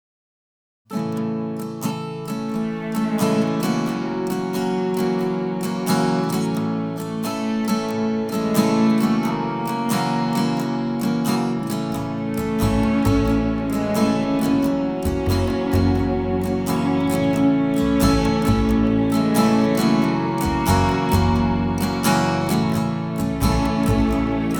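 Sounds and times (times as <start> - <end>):
instrumental music: 1.6 - 24.5.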